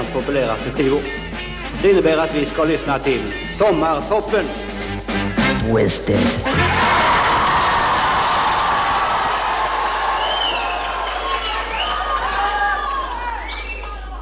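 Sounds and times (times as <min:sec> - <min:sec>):
speech: 0:00.1 - 0:06.9
young crowd cheering and shouting: 0:06.5 - 0:14.2.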